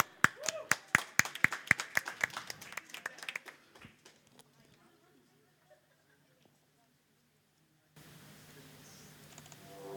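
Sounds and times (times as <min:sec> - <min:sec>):
crisp applause from a small group: 0:00.0 - 0:04.3.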